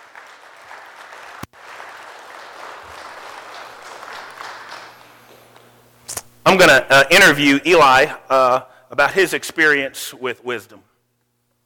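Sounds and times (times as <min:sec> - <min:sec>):
church congregation applauding during a sermon: 0:00.0 - 0:05.6
sharp click: 0:06.1 - 0:06.3
speech: 0:06.5 - 0:10.9.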